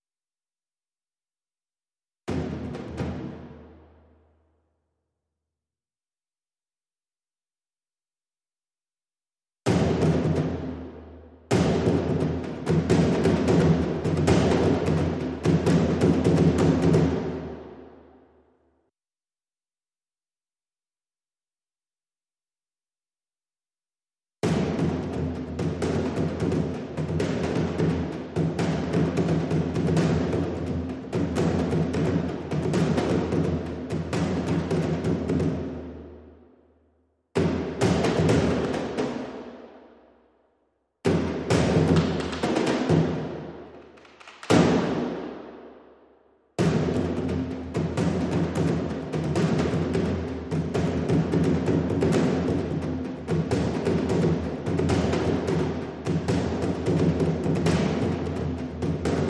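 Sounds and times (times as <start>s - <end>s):
dhol drum struck with stick: 2.3s - 4.1s, 9.7s - 17.9s, 24.4s - 36.3s, 37.4s - 39.5s, 41.0s - 45.5s, 46.6s - 59.2s.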